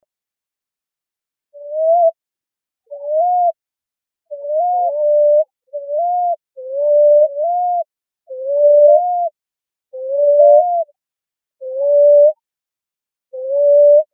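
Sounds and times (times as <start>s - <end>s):
common ground dove cooing in Arizona: 1.6s - 2.2s, 2.9s - 3.6s, 4.3s - 10.9s, 11.6s - 12.4s, 13.3s - 14.1s.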